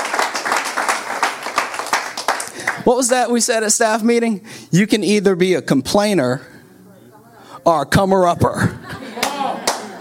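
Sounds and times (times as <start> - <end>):
audience clapping: 0.0 - 3.2, 9.2 - 9.9
speech: 2.9 - 6.5, 7.6 - 8.8
laughter: 8.5 - 9.9.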